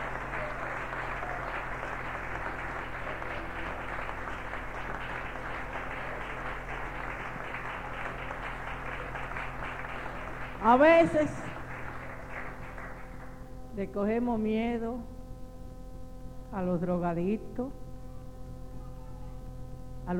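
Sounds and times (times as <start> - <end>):
audience applause: 0.0 - 13.4
speech: 10.7 - 11.4, 13.8 - 15.1, 16.5 - 17.8.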